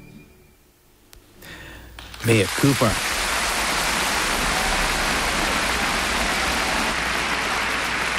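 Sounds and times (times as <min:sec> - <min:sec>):
large audience applause: 0:02.0 - 0:08.1
speech: 0:02.2 - 0:03.1.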